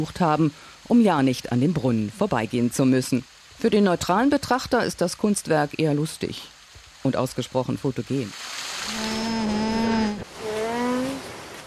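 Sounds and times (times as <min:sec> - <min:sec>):
speech: 0:00.0 - 0:09.1
alpaca humming: 0:08.8 - 0:11.2.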